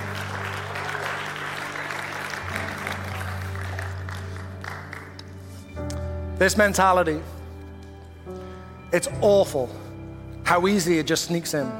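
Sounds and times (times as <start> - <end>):
audience applause: 0.0 - 5.3
speech: 6.4 - 7.4, 8.9 - 9.8, 10.5 - 11.7.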